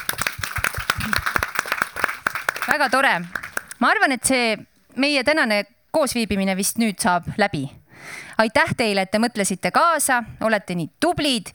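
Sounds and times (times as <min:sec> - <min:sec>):
audience applause: 0:00.0 - 0:03.8
speech: 0:02.7 - 0:11.5.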